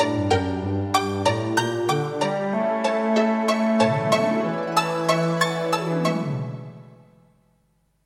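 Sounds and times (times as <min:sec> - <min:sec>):
music track played on a Creative Sound Blaster AWE64 Gold sound card: 0:00.0 - 0:06.8.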